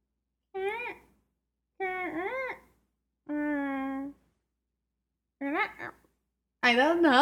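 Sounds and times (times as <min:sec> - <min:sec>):
voice imitating a squeaky faucet: 0:00.5 - 0:01.2, 0:01.8 - 0:04.2, 0:05.4 - 0:06.1.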